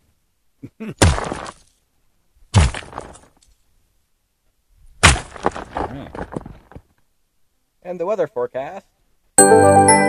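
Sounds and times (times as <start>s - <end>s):
speech: 0.8s - 1.6s, 7.9s - 9.9s
rock smash sound effects: 1.0s - 1.7s, 2.5s - 3.3s, 5.0s - 6.8s.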